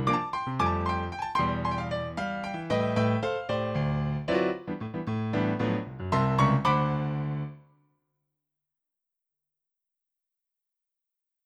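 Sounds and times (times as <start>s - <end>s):
bright grand voice on a Yamaha NP-15 digital piano: 0.0s - 7.7s.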